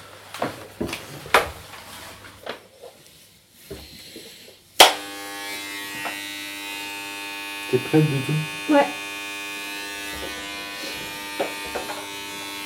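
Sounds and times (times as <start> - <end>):
electric hair clippers buzzing: 4.8 - 12.6
speech: 7.7 - 9.0.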